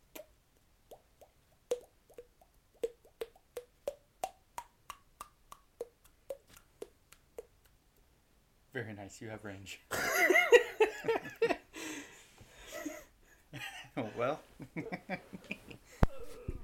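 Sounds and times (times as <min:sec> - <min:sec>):
wet mouth plops imitating raindrops: 0:00.9 - 0:08.1
speech: 0:08.8 - 0:11.6, 0:14.2 - 0:15.6.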